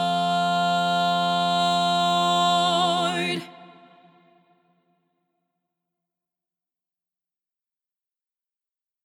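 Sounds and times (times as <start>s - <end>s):
lead vocal in SSAA choir: 0.0s - 4.7s.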